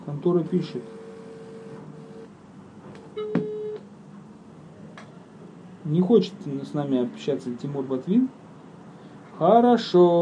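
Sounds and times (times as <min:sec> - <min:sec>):
speech: 0:00.1 - 0:01.0, 0:05.9 - 0:08.4, 0:09.4 - 0:10.1
telephone ringing tones: 0:00.6 - 0:02.3, 0:03.0 - 0:03.9.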